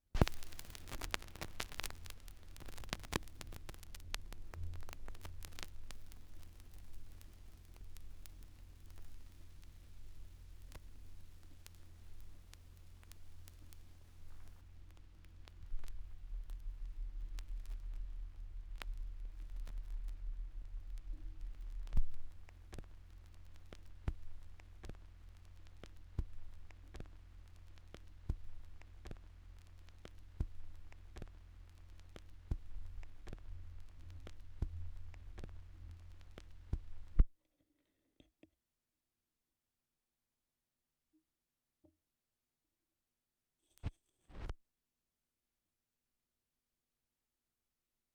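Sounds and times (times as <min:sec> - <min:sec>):
vinyl record noise: 0:00.0 - 0:37.3, 0:43.8 - 0:44.5.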